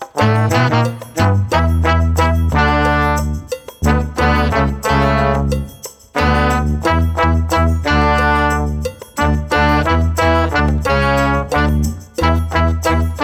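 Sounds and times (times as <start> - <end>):
brass music without drums: 0.0 - 13.2.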